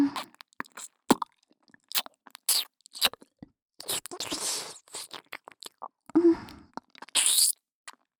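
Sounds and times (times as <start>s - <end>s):
ear licking in the right ear: 0.2s - 1.4s, 1.9s - 5.9s, 7.0s - 7.5s.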